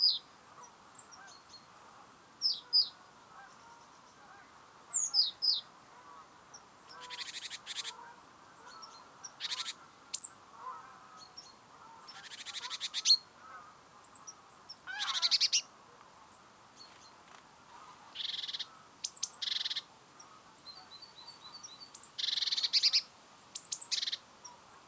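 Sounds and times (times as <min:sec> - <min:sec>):
great tit Parus major giving harsh buzzy rattled calls: 0:06.5 - 0:08.0, 0:08.7 - 0:10.8, 0:12.0 - 0:13.2, 0:14.0 - 0:15.7, 0:16.8 - 0:20.3, 0:22.0 - 0:23.0, 0:23.6 - 0:24.2.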